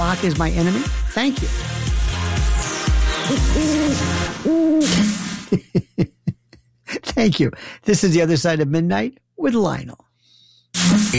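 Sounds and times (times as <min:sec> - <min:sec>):
speech: 0:00.1 - 0:02.0, 0:07.2 - 0:10.0, 0:10.8 - 0:11.1
horned owl hooting: 0:03.2 - 0:05.0
laughter: 0:04.8 - 0:07.0.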